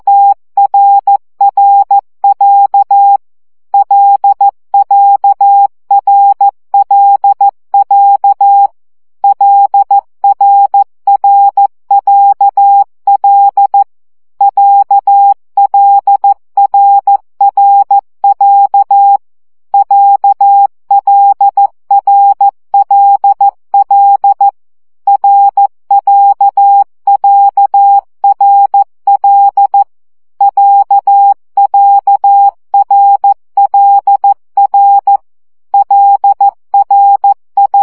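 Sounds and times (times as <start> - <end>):
CW morse code practice at 12 baud: 0.0 - 19.2, 19.8 - 37.8.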